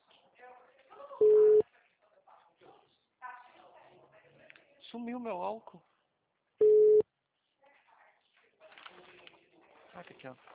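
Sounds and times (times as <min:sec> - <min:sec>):
telephone tone after a dropped call: 0:01.2 - 0:01.6, 0:06.6 - 0:07.0
speech: 0:04.9 - 0:05.9, 0:10.0 - 0:10.5.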